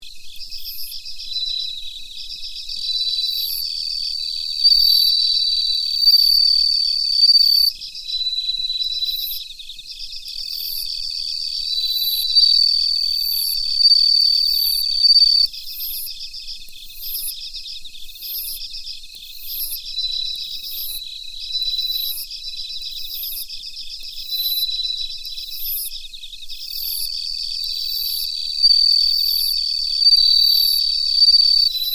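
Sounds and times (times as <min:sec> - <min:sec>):
insect chorus: 0:00.0 - 0:31.9
bell cricket singing: 0:00.2 - 0:31.9.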